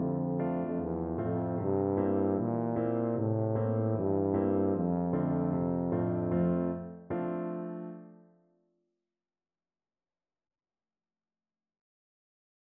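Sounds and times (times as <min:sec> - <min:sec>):
tuba playing a tune: 0:00.0 - 0:06.7.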